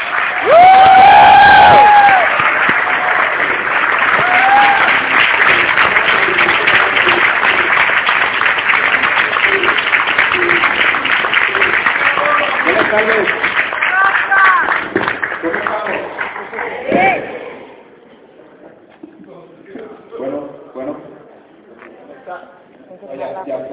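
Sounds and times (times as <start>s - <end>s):
applause: 0.0s - 16.9s.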